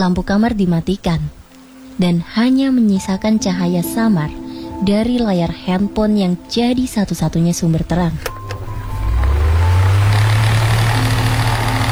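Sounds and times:
speech: 0.0 - 1.4, 2.0 - 8.3
electric fan whirring and spinning: 6.4 - 11.9.

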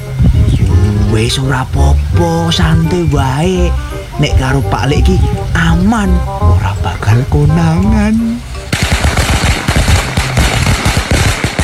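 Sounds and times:
speech: 1.2 - 8.4
firecrackers set off at midday: 8.7 - 11.6.

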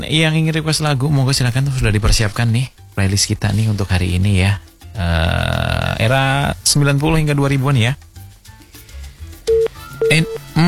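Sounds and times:
speech: 0.1 - 8.1, 10.1 - 10.6
telephone tone on a call to a radio studio that fails to connect: 9.5 - 10.6.

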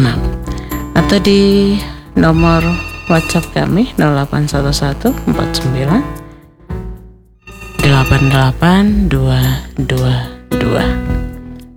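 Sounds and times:
speech: 0.0 - 0.3, 1.0 - 6.2, 8.0 - 11.0
telephone ringing with an incoming call to a radio show: 2.3 - 4.4, 7.4 - 9.0.

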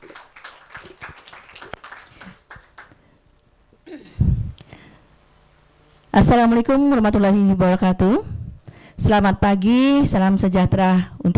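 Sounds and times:
audience applause: 0.0 - 3.0
speech: 6.2 - 8.3, 9.0 - 11.3.

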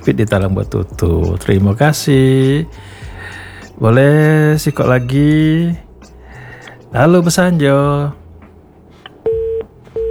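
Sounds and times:
speech: 0.0 - 3.0, 3.8 - 5.8, 6.9 - 8.2
telephone disconnect beeps after a radio call-in line disconnects: 9.2 - 10.0.

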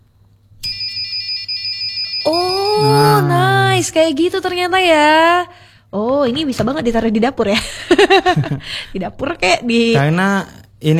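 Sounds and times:
flame sensor alarm buzzing: 0.6 - 3.5
speech: 2.3 - 10.9.

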